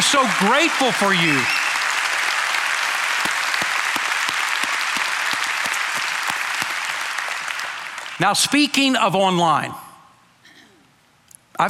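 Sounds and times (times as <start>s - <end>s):
audience applauding: 0.0s - 8.8s
speech: 0.1s - 1.6s, 8.2s - 9.8s.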